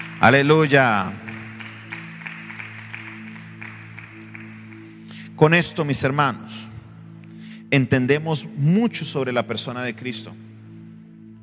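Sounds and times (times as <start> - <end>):
audience applause: 0.0 - 5.1
speech: 0.2 - 1.3, 5.4 - 6.7, 7.7 - 10.4.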